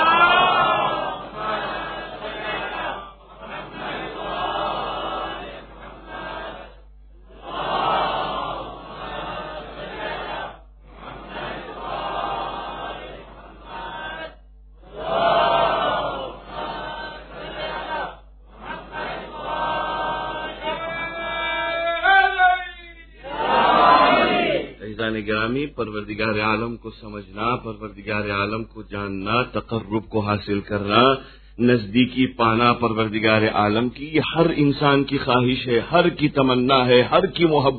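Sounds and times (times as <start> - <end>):
congregation loudly reciting salawat blessings: 0.0 - 22.2, 23.2 - 24.8
speech: 25.4 - 37.7.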